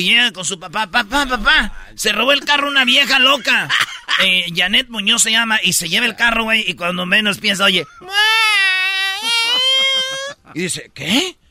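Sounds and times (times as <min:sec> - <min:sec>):
speech: 0:00.0 - 0:08.3, 0:10.5 - 0:11.4
baby crying: 0:08.0 - 0:10.4
laughter: 0:09.1 - 0:10.4.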